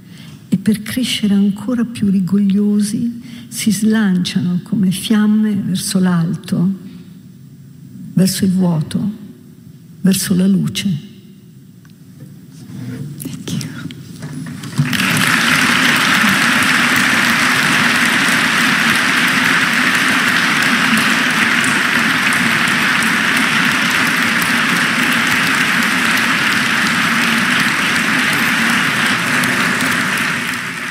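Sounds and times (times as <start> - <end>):
speech: 0.6 - 6.8, 8.2 - 9.2, 10.0 - 11.1
theatre audience applause: 14.2 - 30.8.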